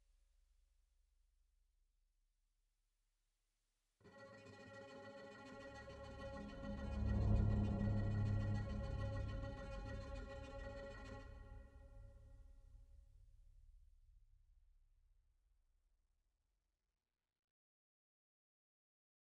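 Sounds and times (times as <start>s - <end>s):
string instrument: 4.1s - 12.8s.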